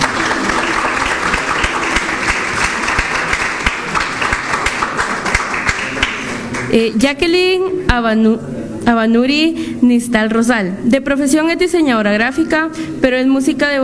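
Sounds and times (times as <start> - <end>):
audience applause: 0.0 - 6.7
speech: 6.7 - 13.8.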